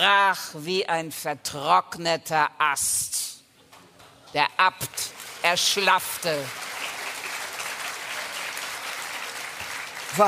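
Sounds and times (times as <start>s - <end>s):
speech: 0.0s - 3.4s, 4.3s - 6.7s
audience clapping: 4.9s - 10.2s.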